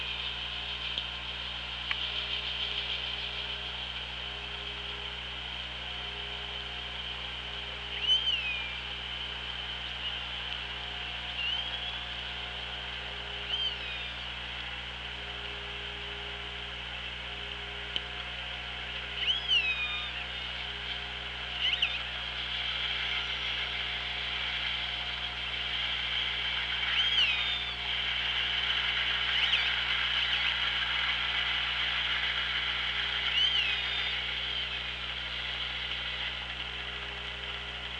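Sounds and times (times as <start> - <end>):
low steady hum: 0.0 - 37.9
orca tonal calls underwater: 7.9 - 10.4, 11.1 - 12.7, 13.3 - 14.4, 19.0 - 25.2, 26.1 - 31.3, 32.3 - 35.2.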